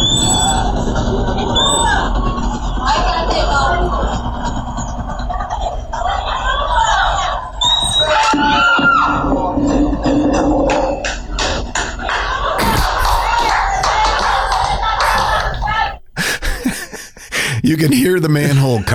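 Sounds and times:
crowd laughing: 0:00.6 - 0:07.6, 0:08.2 - 0:18.9
crowd applauding: 0:10.8 - 0:16.8
speech: 0:17.8 - 0:18.9.

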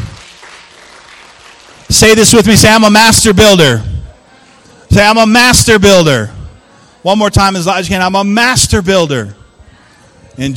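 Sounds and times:
audience applause: 0:00.0 - 0:02.0
speech: 0:01.9 - 0:03.9, 0:05.0 - 0:06.4, 0:07.0 - 0:09.4, 0:10.4 - 0:10.5.

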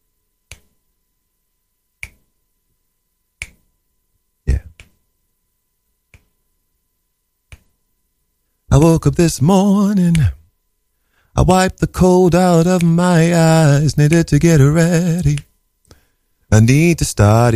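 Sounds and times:
finger snaps: 0:00.4 - 0:00.8, 0:02.0 - 0:02.3, 0:03.4 - 0:03.7, 0:04.5 - 0:05.0, 0:06.1 - 0:06.4, 0:07.5 - 0:07.8, 0:09.9 - 0:10.4, 0:12.6 - 0:13.0, 0:14.1 - 0:14.4, 0:15.1 - 0:16.0
speech: 0:08.8 - 0:10.4, 0:11.4 - 0:15.5, 0:16.5 - 0:17.5.

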